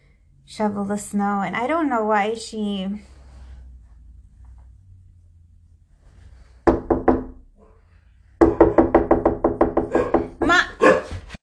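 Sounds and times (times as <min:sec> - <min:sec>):
speech: 0:00.5 - 0:03.1
tapping on a window: 0:06.7 - 0:07.4, 0:08.4 - 0:10.4.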